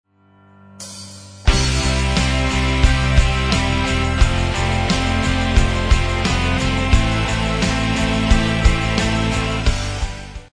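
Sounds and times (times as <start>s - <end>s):
instrumental music: 0.5s - 10.5s.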